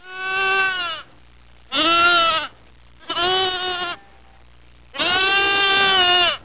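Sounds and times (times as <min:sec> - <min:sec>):
lamb: 0:00.0 - 0:01.1, 0:01.7 - 0:06.4.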